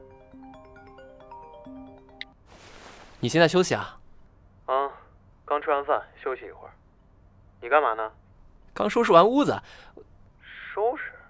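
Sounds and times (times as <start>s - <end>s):
mobile phone ringing: 0.0s - 2.4s
speech: 3.2s - 4.0s, 5.6s - 6.8s, 7.6s - 8.2s, 8.8s - 10.1s, 10.8s - 11.2s.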